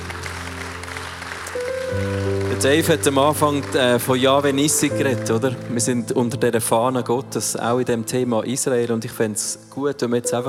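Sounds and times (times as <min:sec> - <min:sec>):
audience applause: 0:00.0 - 0:06.0
speech: 0:02.6 - 0:10.4.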